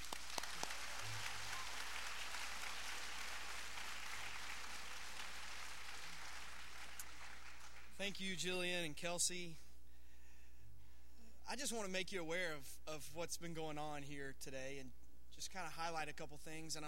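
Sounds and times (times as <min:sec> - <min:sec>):
audience applause: 0:00.0 - 0:08.0
speech: 0:08.0 - 0:09.7, 0:11.5 - 0:16.8.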